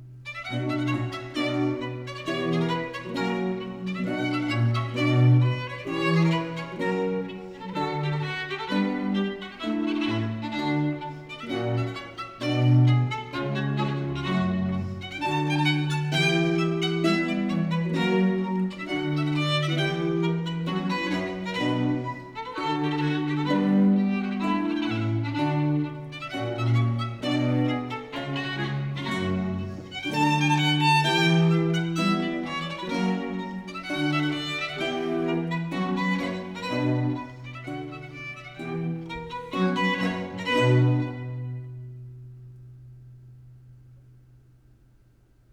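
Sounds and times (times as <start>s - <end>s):
violin sonata gavotte in C minor: 0.0s - 43.6s.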